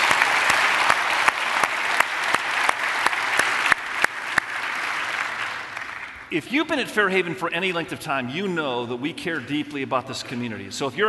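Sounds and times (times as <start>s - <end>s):
audience applause: 0.0s - 6.3s
speech: 6.3s - 11.0s.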